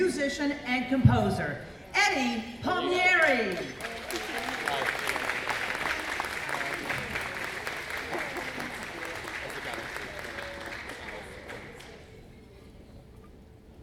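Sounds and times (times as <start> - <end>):
speech: 0.0 - 4.9
audience applause: 3.5 - 12.3.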